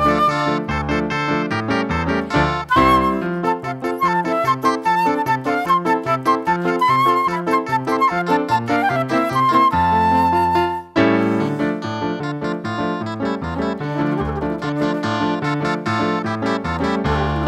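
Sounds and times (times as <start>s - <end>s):
instrumental music: 0.0s - 17.4s.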